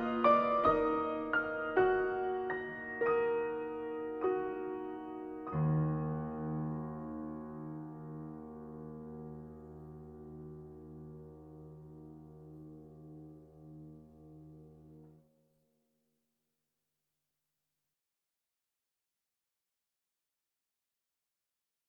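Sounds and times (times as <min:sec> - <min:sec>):
drunken piano playing: 0:00.0 - 0:15.2.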